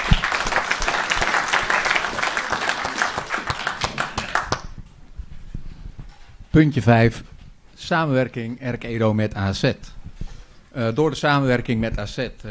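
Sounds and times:
audience applause: 0.0 - 4.8
speech: 6.6 - 10.0, 10.8 - 12.4.

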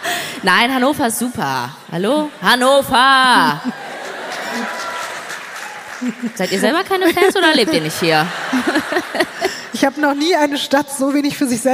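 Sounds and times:
speech: 0.4 - 3.8, 6.0 - 11.7
laughter: 3.3 - 10.1
thin scattered audience applause: 3.8 - 7.6.

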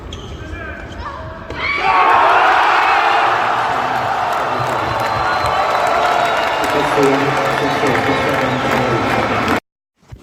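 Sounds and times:
crowd roaring and cheering at a tennis match: 1.5 - 9.6
scattered clapping: 3.4 - 9.6.

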